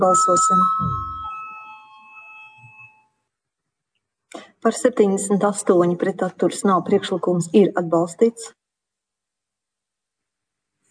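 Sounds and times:
speech: 0.0s - 1.1s, 4.6s - 8.6s
voting bell ringing in the Latvian parliament Saeima: 0.0s - 3.2s.

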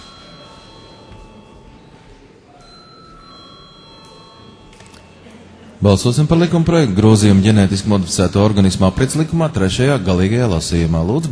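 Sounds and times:
parliament chamber electric bell ringing: 0.0s - 5.3s
murmur: 0.0s - 11.3s
speech: 5.8s - 11.3s.

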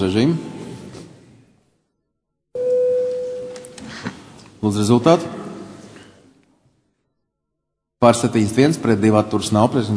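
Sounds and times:
speech: 0.0s - 0.5s, 4.6s - 5.4s, 8.0s - 9.9s
parliament vote-call bell as a sustained electronic tone: 2.6s - 3.8s.

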